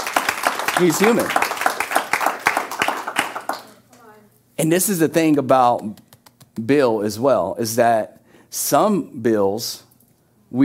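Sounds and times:
audience clapping: 0.0s - 4.0s
speech: 0.8s - 1.4s, 4.6s - 6.0s, 6.6s - 9.9s.

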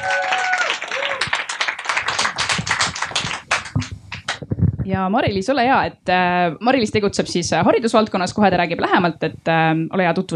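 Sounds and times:
audience applause: 0.0s - 4.4s
speech: 4.9s - 10.3s.

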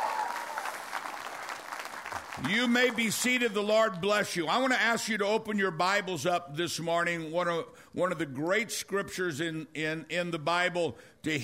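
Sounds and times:
audience clapping: 0.0s - 4.0s
speech: 2.4s - 11.4s.

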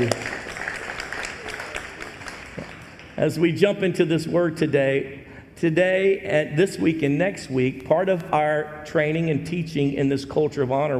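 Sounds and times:
speech: 0.0s - 0.3s, 3.2s - 10.9s
audience clapping: 0.0s - 3.2s.

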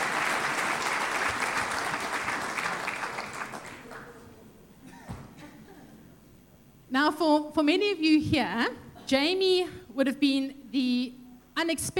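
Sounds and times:
audience applause: 0.0s - 4.2s
speech: 7.0s - 11.9s.

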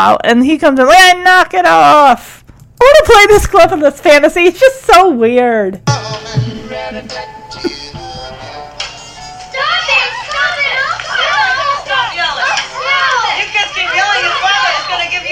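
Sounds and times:
speech: 0.0s - 7.8s
kids yelling: 9.6s - 15.2s.

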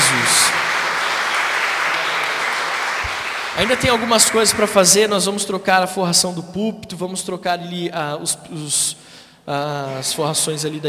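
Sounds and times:
church audience applause: 0.0s - 4.6s
speech: 3.6s - 10.8s.

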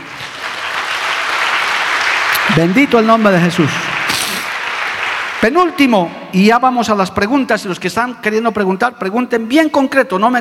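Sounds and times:
audience applause: 0.0s - 5.8s
speech: 2.6s - 3.8s, 5.4s - 10.4s.

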